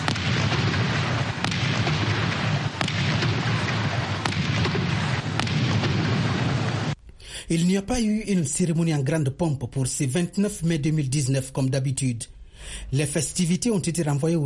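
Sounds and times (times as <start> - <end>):
21-gun cannon salute: 0.0 - 7.0
speech: 7.5 - 14.4.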